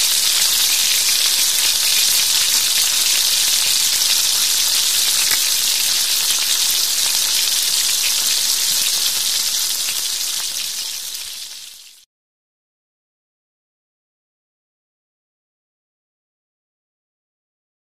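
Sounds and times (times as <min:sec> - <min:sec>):
food frying: 0:00.0 - 0:12.1.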